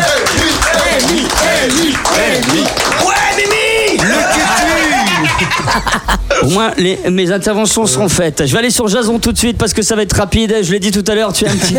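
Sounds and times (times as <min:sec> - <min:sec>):
audience applause: 0:00.0 - 0:05.8
laughter: 0:04.0 - 0:06.4
speech: 0:05.8 - 0:11.7.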